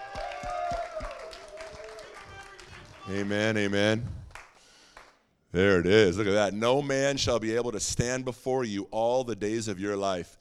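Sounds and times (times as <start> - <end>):
audience applause: 0.0 - 4.6
speech: 3.1 - 4.2, 5.5 - 10.3.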